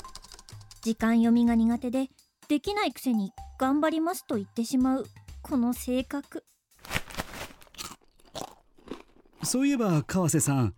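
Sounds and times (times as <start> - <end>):
speech: 0.8 - 6.5, 9.4 - 10.7
person biting and chewing shrimp crackers: 6.8 - 9.8.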